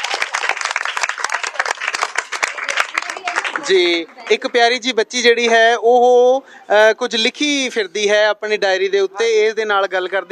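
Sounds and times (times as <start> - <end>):
loud audience applause after a Punjabi poem recitation: 0.0 - 4.6
speech: 3.6 - 10.3.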